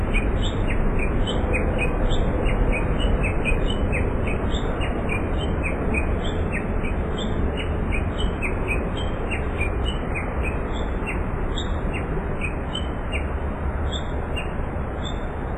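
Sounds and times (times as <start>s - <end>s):
Japanese bush warbler uttering rapid falling chirps: 0.0s - 15.4s.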